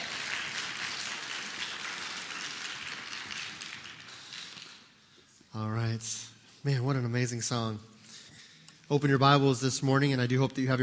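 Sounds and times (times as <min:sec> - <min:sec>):
audience applause: 0:00.0 - 0:04.8
speech: 0:05.5 - 0:07.9, 0:08.9 - 0:10.8.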